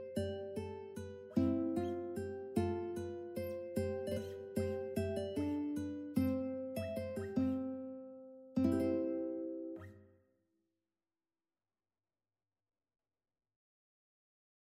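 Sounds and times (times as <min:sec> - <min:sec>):
ukulele: 0:00.0 - 0:07.9, 0:08.6 - 0:09.9.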